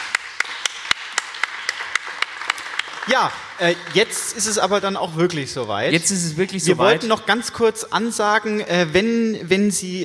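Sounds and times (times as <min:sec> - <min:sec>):
audience applause at an evening of literary readings: 0:00.0 - 0:04.9
speech: 0:03.1 - 0:10.0.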